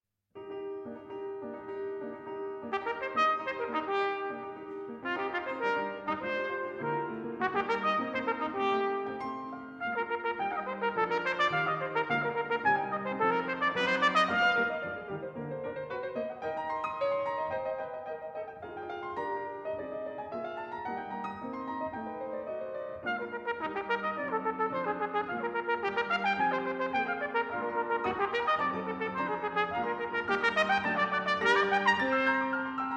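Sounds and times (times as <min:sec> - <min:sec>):
piano playing allegro: 0:00.4 - 0:32.9
trumpet playing allegro: 0:02.6 - 0:15.4, 0:23.0 - 0:32.9.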